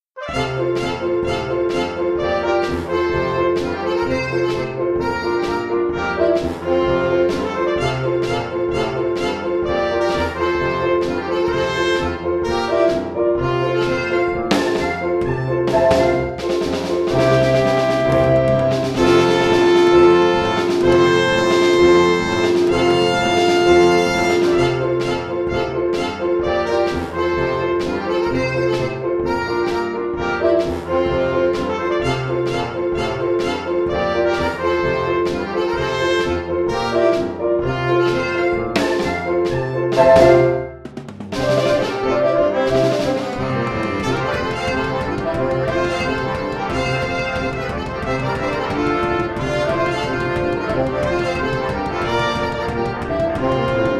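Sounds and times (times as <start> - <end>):
swing polka music: 0.0 - 53.9.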